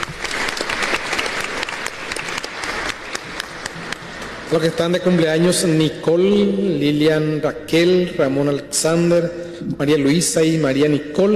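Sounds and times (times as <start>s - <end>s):
audience applause: 0.0s - 4.6s
speech: 4.5s - 11.3s.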